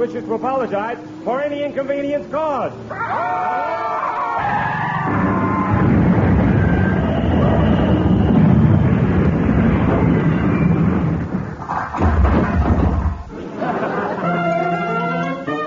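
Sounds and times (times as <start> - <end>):
speech: 0.0 - 5.3
crash sound effect in a comedy radio play: 5.0 - 13.3
laughter: 13.3 - 15.5.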